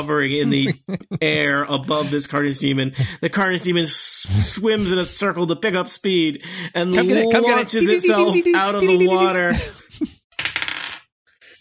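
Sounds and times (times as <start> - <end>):
speech: 0.0 - 10.5
laughter: 0.4 - 3.7, 7.0 - 10.1
dice rolling on a table: 10.4 - 11.1.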